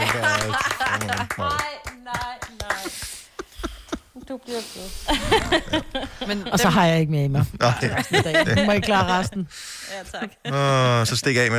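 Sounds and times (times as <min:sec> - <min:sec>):
laughter: 0:00.0 - 0:01.6, 0:05.0 - 0:06.7, 0:07.6 - 0:11.0
hands clapping: 0:00.0 - 0:03.5
speech: 0:04.4 - 0:11.5.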